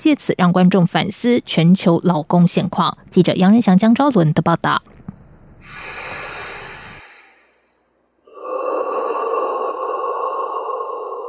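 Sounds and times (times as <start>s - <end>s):
speech: 0.0s - 4.9s
heavy breathing: 5.6s - 11.2s.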